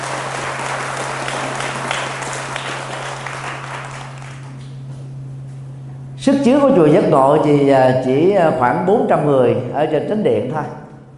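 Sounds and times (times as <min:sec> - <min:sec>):
crowd clapping: 0:00.0 - 0:04.8
low steady hum: 0:00.0 - 0:11.1
speech: 0:06.2 - 0:10.8.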